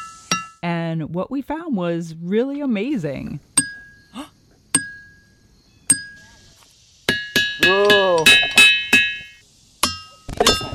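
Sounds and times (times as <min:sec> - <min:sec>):
speech: 0:00.9 - 0:03.5
hammer striking rock: 0:07.1 - 0:10.6.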